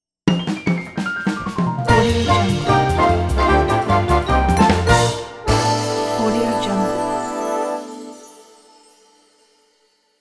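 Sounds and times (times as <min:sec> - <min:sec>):
jazzy sitcom stinger transition: 0:01.2 - 0:08.1.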